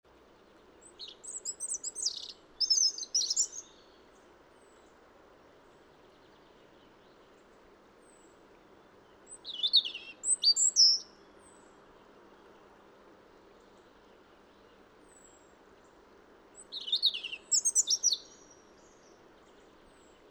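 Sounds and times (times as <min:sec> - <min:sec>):
faint hiss: 0:00.0 - 0:20.2
European robin singing: 0:00.8 - 0:04.0, 0:09.3 - 0:11.2, 0:16.6 - 0:20.2.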